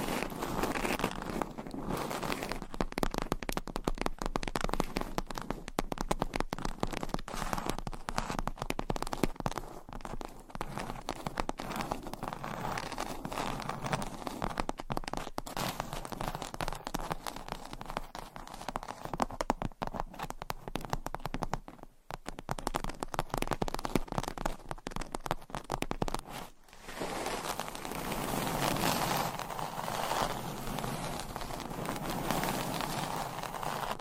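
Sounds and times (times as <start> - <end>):
scratching and tapping: 0.0 - 34.0.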